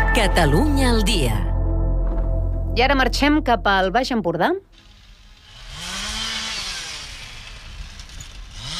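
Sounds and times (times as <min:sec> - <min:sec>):
speech: 0:00.2 - 0:01.5, 0:02.7 - 0:04.7
chainsaws cutting trees beside a road: 0:04.7 - 0:08.7.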